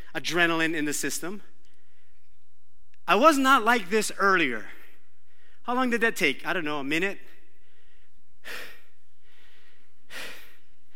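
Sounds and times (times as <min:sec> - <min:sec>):
speech: 0:00.2 - 0:01.5, 0:03.1 - 0:04.8, 0:05.6 - 0:07.3, 0:08.4 - 0:08.7
heavy breathing after running: 0:07.6 - 0:10.9.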